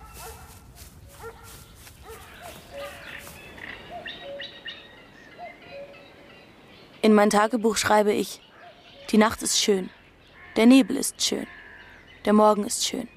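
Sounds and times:
large German shepherd dog barking: 0:00.0 - 0:00.6, 0:01.2 - 0:03.1
speech: 0:07.1 - 0:08.4, 0:09.1 - 0:10.0, 0:10.6 - 0:11.6, 0:12.2 - 0:13.1.

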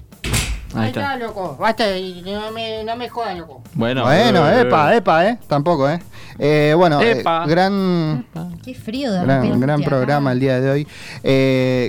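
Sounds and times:
door closing: 0:00.0 - 0:01.0
speech: 0:00.7 - 0:11.8.

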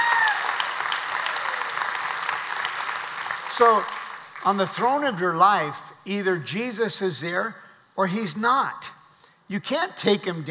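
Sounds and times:
audience applause: 0:00.0 - 0:04.5
speech: 0:03.6 - 0:08.9, 0:09.5 - 0:10.4.

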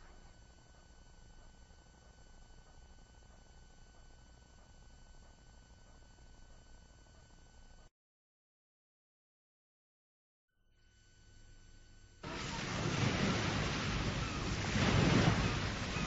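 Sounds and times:
sea waves: 0:12.2 - 0:16.0.

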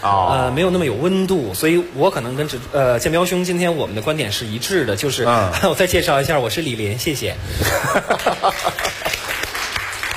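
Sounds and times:
speech: 0:00.0 - 0:09.0
laughter: 0:07.6 - 0:09.4
sparse applause from an audience at a Beijing talk event: 0:08.5 - 0:10.1.

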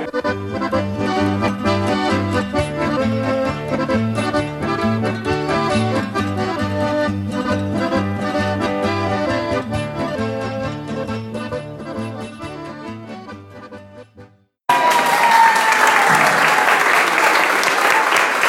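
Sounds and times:
music: 0:00.0 - 0:14.5
crowd applauding and cheering at the Cipotegato festival in 2018: 0:14.7 - 0:18.4.

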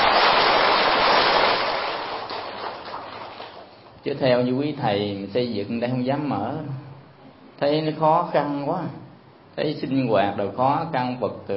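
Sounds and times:
audience applause: 0:00.0 - 0:03.7
speech: 0:04.0 - 0:06.9, 0:07.6 - 0:09.0, 0:09.6 - 0:11.5.

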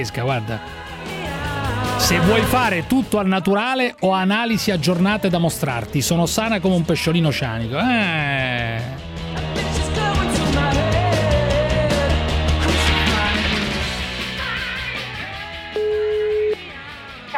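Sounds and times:
speech: 0:00.0 - 0:00.9, 0:01.8 - 0:09.1
dense busy musical background: 0:00.0 - 0:17.3
phone line tone after caller hangs up: 0:15.8 - 0:16.6.

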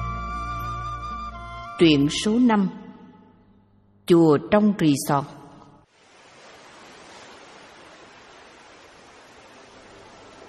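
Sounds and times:
speech: 0:01.8 - 0:02.8, 0:04.1 - 0:05.4
sea waves washing against rocks: 0:05.9 - 0:10.4.

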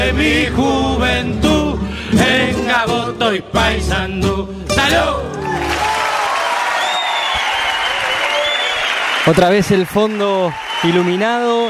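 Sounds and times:
speech: 0:00.0 - 0:05.9, 0:09.2 - 0:11.6
theater audience applauding enthusiastically: 0:05.4 - 0:11.6.

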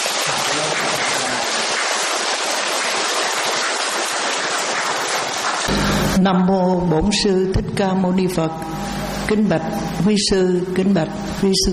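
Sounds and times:
crowd applauding: 0:00.0 - 0:06.1
speech: 0:06.2 - 0:11.7.

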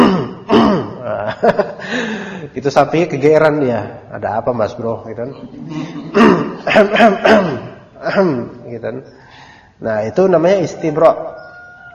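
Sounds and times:
throat clearing: 0:00.0 - 0:01.3, 0:05.7 - 0:08.6
speech: 0:01.4 - 0:09.2, 0:09.8 - 0:11.4.

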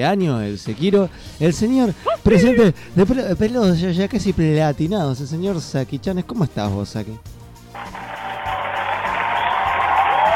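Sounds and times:
speech: 0:00.0 - 0:08.0
applause sound effect: 0:07.7 - 0:10.3.

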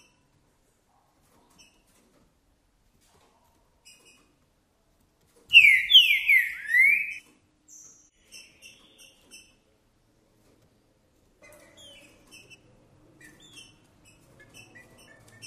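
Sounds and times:
green-winged saltator whistled song: 0:05.5 - 0:07.2.

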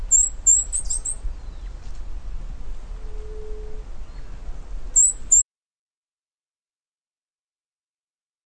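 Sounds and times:
São Francisco sparrow Arremon franciscanus singing: 0:00.0 - 0:01.8, 0:03.1 - 0:05.4.

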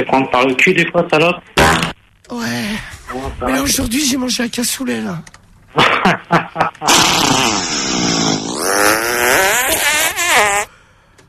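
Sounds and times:
speech: 0:00.0 - 0:10.7
fart: 0:01.6 - 0:02.0, 0:06.8 - 0:10.7.

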